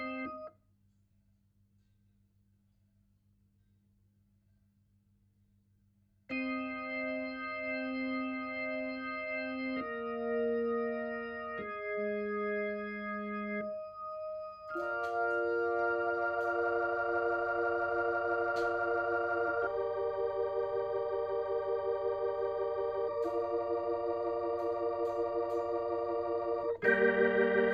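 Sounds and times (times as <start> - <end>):
Hammond organ through a Leslie speaker: 0.0 - 0.5, 6.3 - 27.7.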